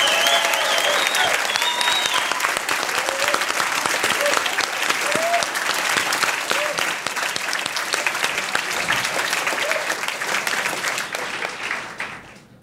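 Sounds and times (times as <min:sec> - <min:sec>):
faint whoops and cheers: 0:00.0 - 0:05.5
audience applauding: 0:00.0 - 0:12.5.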